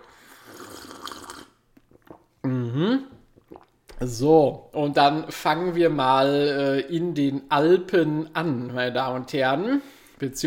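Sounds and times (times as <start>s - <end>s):
person sipping freshly tapped caffeinated apple spritzer: 0.0s - 4.0s
speech: 2.5s - 3.1s, 4.0s - 10.4s.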